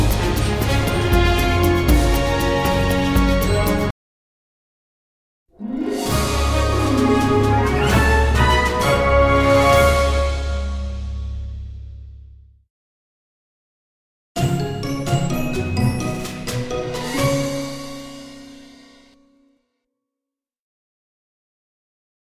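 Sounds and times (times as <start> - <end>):
music: 0.0 - 3.9, 5.5 - 12.7, 14.4 - 20.4.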